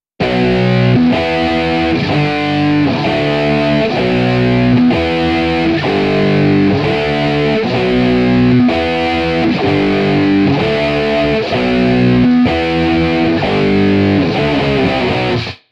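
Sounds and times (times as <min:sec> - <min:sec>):
dub guitar: 0:00.2 - 0:15.6.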